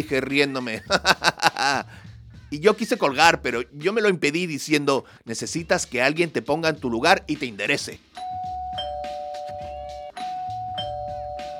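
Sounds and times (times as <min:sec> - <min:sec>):
laughter: 0:00.0 - 0:01.9
speech: 0:00.0 - 0:08.5
electric doorbell buzzing: 0:08.2 - 0:11.5.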